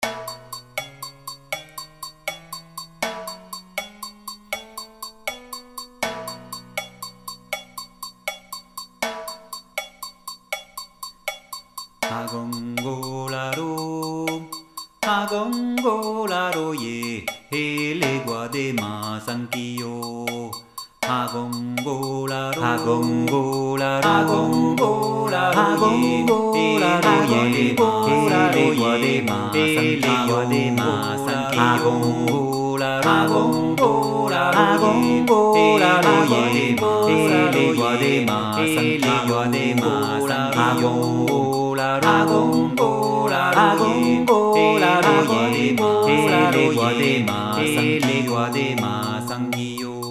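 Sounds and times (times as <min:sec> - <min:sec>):
Yoruba music loop: 0:00.0 - 0:50.0.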